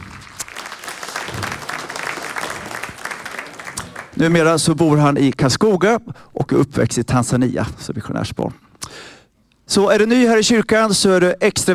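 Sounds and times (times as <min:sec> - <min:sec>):
audience applause in church: 0:00.0 - 0:04.2
speech: 0:04.2 - 0:08.6, 0:09.7 - 0:11.7.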